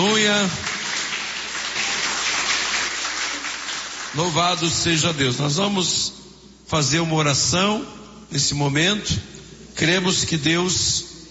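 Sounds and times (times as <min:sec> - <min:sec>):
speech: 0:00.0 - 0:00.7, 0:04.1 - 0:11.1
audience clapping: 0:00.0 - 0:04.9.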